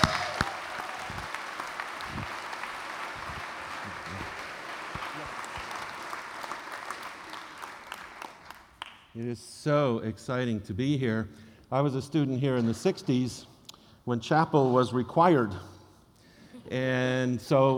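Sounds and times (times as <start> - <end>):
audience applause welcoming a speaker at Hope College: 0.0 - 9.0
speech: 9.2 - 13.5, 14.1 - 15.7, 16.7 - 17.7.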